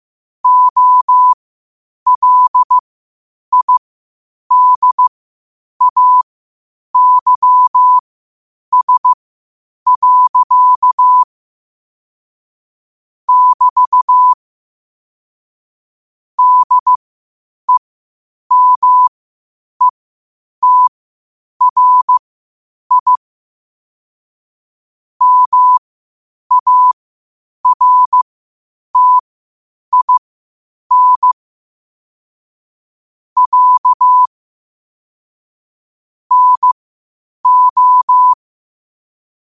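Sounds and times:
morse code at 5 wpm: 0.4 - 1.4, 2.1 - 2.8, 3.5 - 3.8, 4.5 - 5.1, 5.8 - 6.2, 7.0 - 8.0, 8.7 - 9.2, 9.9 - 11.3, 13.3 - 14.4, 16.4 - 17.0, 18.5 - 19.1, 20.6 - 20.9, 21.6 - 22.2, 22.9 - 23.2, 25.2 - 25.8, 26.5 - 27.0, 27.6 - 28.2, 29.0 - 29.2, 29.9 - 30.2, 30.9 - 31.4, 33.4 - 34.3, 36.3 - 36.8, 37.4 - 38.4.

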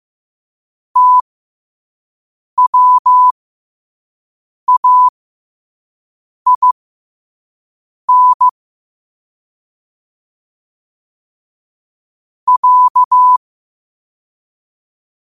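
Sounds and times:
morse code at 5 wpm: 1.0 - 1.2, 2.6 - 3.3, 4.7 - 5.1, 6.5 - 6.8, 8.1 - 8.5, 12.5 - 13.4.

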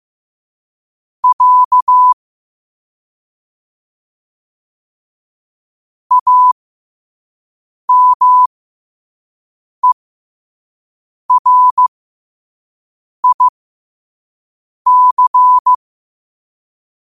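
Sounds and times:
morse code at 5 wpm: 1.2 - 2.2, 6.1 - 6.6, 7.9 - 8.5, 11.3 - 11.9, 13.2 - 13.5, 14.9 - 15.8.

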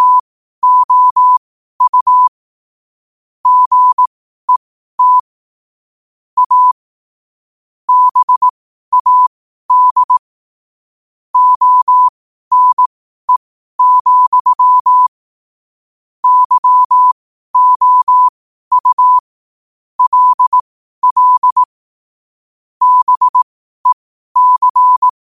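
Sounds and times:
morse code at 5 wpm: 0.0 - 2.3, 3.4 - 5.3, 6.4 - 6.8, 7.9 - 10.2, 11.4 - 15.1, 16.2 - 19.2, 20.0 - 21.7, 22.8 - 25.1.

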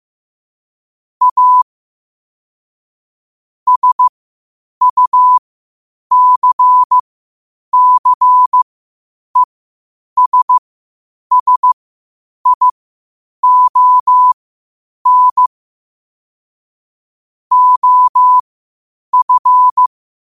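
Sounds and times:
morse code at 5 wpm: 1.2 - 1.6, 3.7 - 4.1, 4.8 - 5.4, 6.1 - 7.0, 7.8 - 8.6, 10.2 - 10.6, 11.3 - 11.8, 12.4 - 12.7, 13.4 - 14.4, 15.0 - 15.5, 17.5 - 18.4, 19.1 - 19.9.

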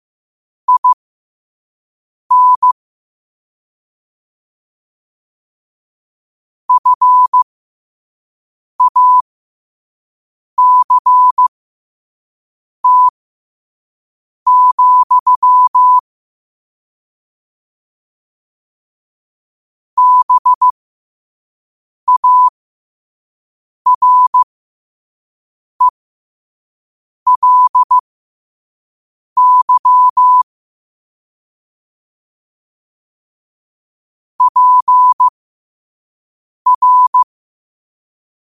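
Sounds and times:
morse code at 5 wpm: 0.7 - 1.0, 2.3 - 2.8, 6.7 - 7.4, 8.8 - 9.2, 10.6 - 11.5, 12.8 - 13.1, 14.5 - 16.0, 20.0 - 20.7, 22.1 - 22.5, 23.9 - 24.5, 27.3 - 28.0, 29.4 - 30.5, 34.4 - 35.3, 36.7 - 37.3.

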